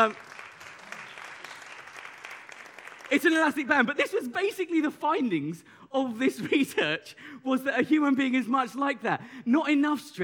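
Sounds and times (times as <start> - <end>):
speech: 0.0 - 0.3, 3.1 - 10.2
audience applause: 0.0 - 3.4.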